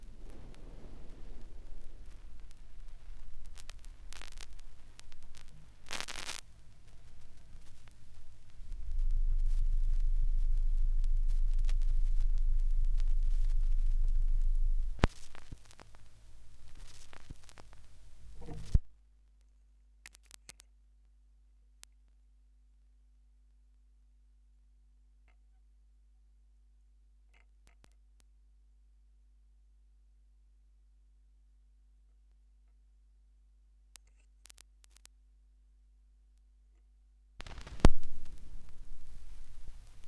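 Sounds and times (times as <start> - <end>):
vinyl record noise: 0.0 - 19.0, 20.1 - 20.6, 34.0 - 35.1, 37.4 - 40.0.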